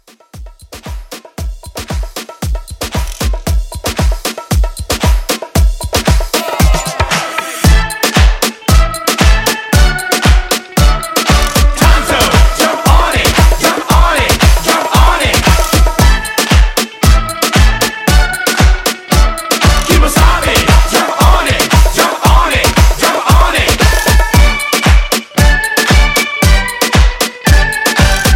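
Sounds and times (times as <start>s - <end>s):
90s moombahton drum loop at 115 BPM: 0.0s - 28.3s.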